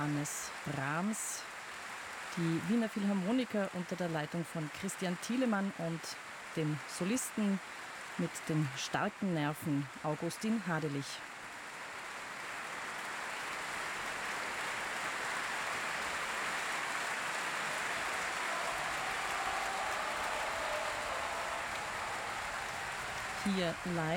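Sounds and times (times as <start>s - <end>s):
speech: 0.0s - 1.5s, 2.4s - 11.3s, 23.4s - 24.1s
concert hall applause for soloist: 12.4s - 24.1s.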